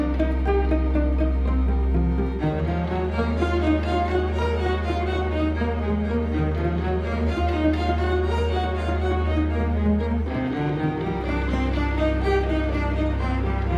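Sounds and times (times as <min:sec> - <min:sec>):
solo strings: 0:00.0 - 0:13.7.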